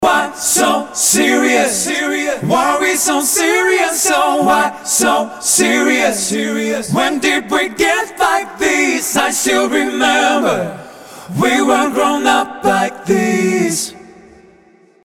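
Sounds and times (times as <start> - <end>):
backing vocals: 0.0 - 14.6.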